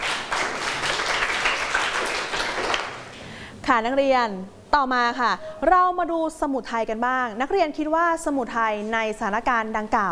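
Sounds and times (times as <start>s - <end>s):
students clapping: 0.0s - 3.2s
speech: 3.7s - 10.1s.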